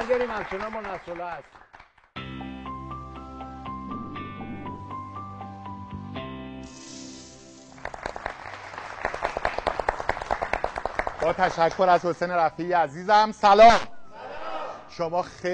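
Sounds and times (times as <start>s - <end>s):
audience applause for two departing guests on a Persian-language talk show: 0.0s - 1.9s, 7.7s - 12.0s
speech: 0.1s - 1.7s, 11.2s - 13.9s, 15.0s - 15.5s.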